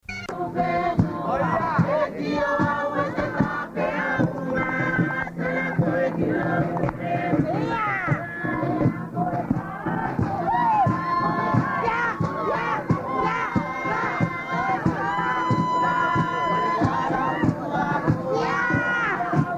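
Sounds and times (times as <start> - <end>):
choirs of Wallis Futuna singing: 0.3 - 19.5.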